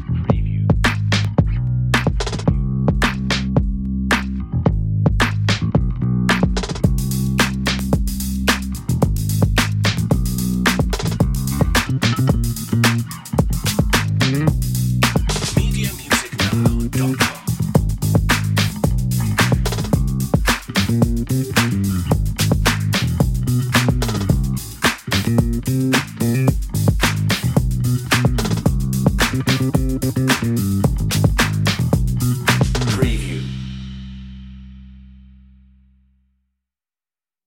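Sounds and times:
glam style drums: 0.0 - 34.8
glam style bass: 0.0 - 36.5
hip hop urban rnb music: 6.8 - 33.6.

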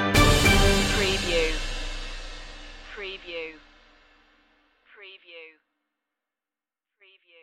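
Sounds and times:
big top circus stinger: 0.1 - 3.7.

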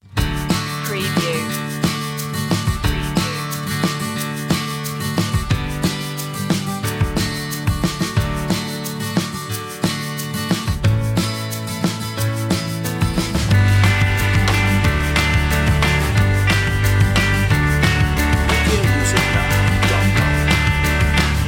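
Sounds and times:
indie feelgood music: 0.0 - 21.4.

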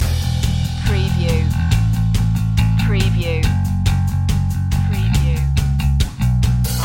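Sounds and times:
garage jam loop: 0.0 - 6.8.

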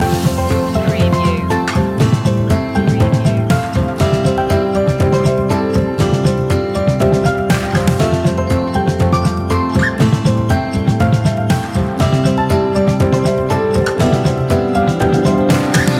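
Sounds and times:
warm welcome music loop: 0.0 - 15.9.

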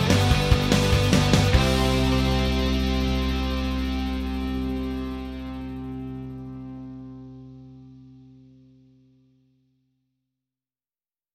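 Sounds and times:
instrumental rock music without vocals: 0.0 - 8.8.

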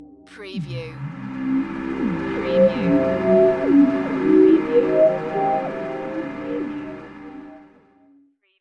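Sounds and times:
foggy sci-fi fantasy audio logo: 1.0 - 7.7.

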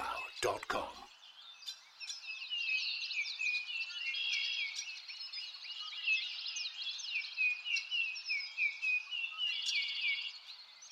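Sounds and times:
birds singing: 0.0 - 10.9
speech: 0.4 - 1.1.

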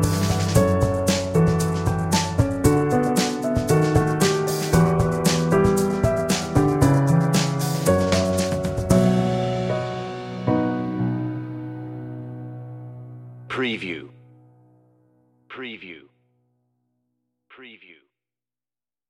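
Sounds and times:
drums: 0.0 - 10.8
sweet piano: 0.0 - 15.5.

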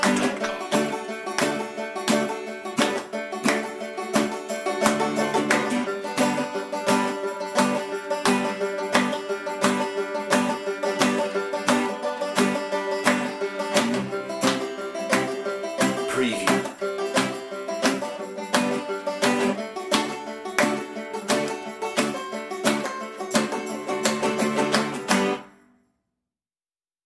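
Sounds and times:
percussion: 0.0 - 25.4
banjo: 0.0 - 25.6
guitar: 0.0 - 25.8.

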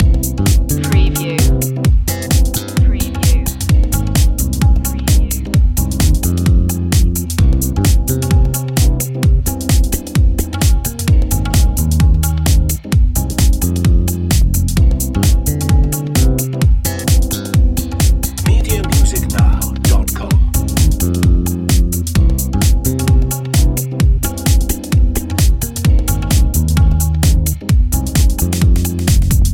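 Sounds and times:
ethnic nightlife music loop: 0.0 - 29.5.

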